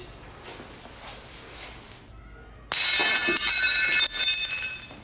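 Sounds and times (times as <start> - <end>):
ceramic dishes smashing into shards: 2.7 - 4.9.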